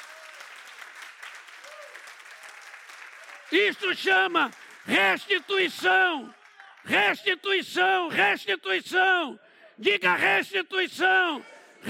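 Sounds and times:
audience applause: 0.0 - 7.1
speech: 3.5 - 11.8.

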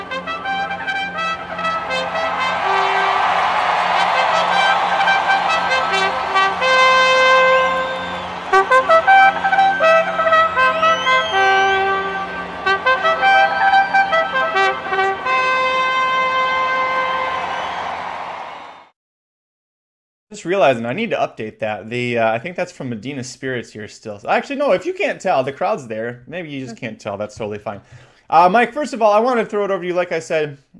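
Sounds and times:
racetrack bugler playing a bugle call: 0.0 - 17.8
speech: 20.4 - 30.7.

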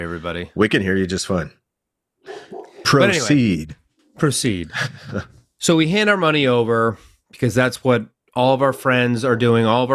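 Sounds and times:
speech: 0.0 - 1.6, 2.9 - 9.9
dog barking harshly: 2.2 - 3.0.

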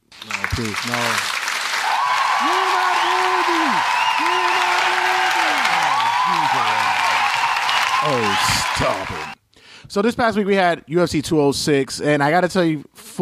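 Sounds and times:
applause: 0.0 - 9.4
speech: 0.6 - 1.3, 8.0 - 13.1.

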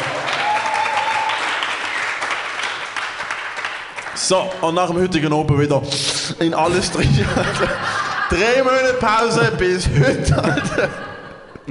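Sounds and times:
applause: 0.0 - 4.8
speech: 4.3 - 11.0
laughter: 6.5 - 11.6.

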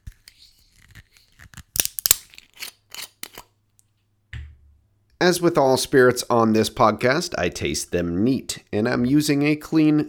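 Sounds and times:
metal bottle screw cap unscrewing: 1.8 - 3.5
speech: 5.2 - 10.0.

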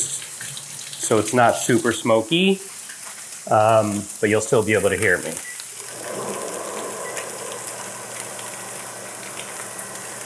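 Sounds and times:
speech: 1.1 - 2.7, 3.4 - 5.5
overhead kitchen range hood running: 5.8 - 10.2.

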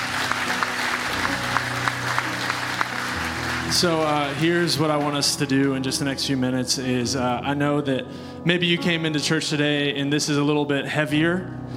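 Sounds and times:
audience clapping: 0.0 - 5.9
speech: 3.7 - 11.7.

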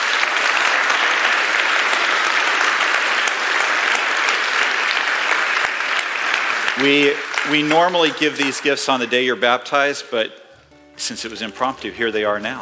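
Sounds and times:
audience applause: 0.0 - 10.0
speech: 6.8 - 10.4, 11.0 - 12.6.

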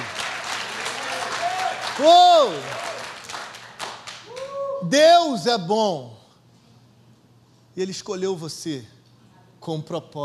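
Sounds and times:
audience applause: 0.0 - 4.6
speech: 2.0 - 2.8, 4.8 - 6.2, 7.8 - 9.0, 9.6 - 10.2.

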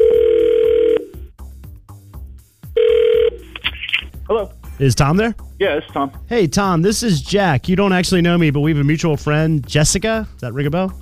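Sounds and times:
electronic ringback tone of an outgoing phone call: 0.0 - 1.3, 2.8 - 3.5
speech: 4.3 - 11.0.

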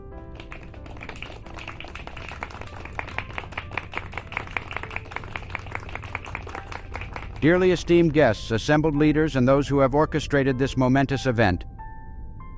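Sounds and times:
audience applause welcoming a reverend at a ceremony: 0.3 - 7.6
speech: 7.4 - 11.7.

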